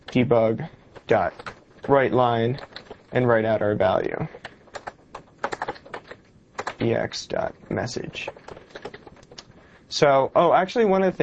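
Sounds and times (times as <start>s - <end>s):
speech: 0.1s - 4.4s, 6.8s - 8.4s, 9.9s - 11.2s
typing on a computer keyboard while entering a line of code: 1.0s - 3.1s, 4.4s - 6.9s, 8.1s - 9.5s.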